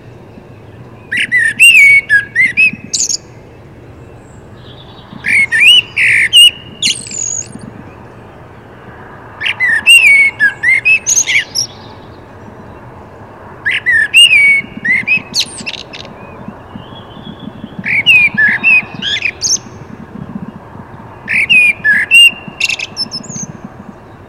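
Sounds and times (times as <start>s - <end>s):
common blackbird Turdus merula singing: 0.0s - 24.2s.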